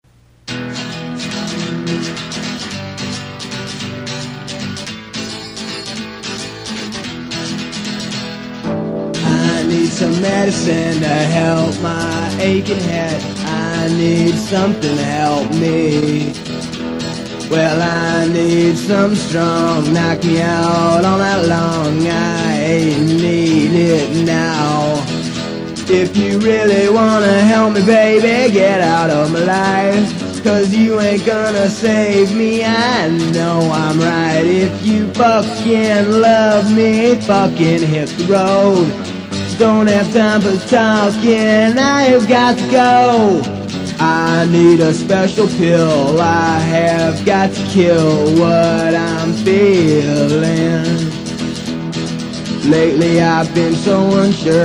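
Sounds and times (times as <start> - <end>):
acoustic music: 0.1 - 54.6.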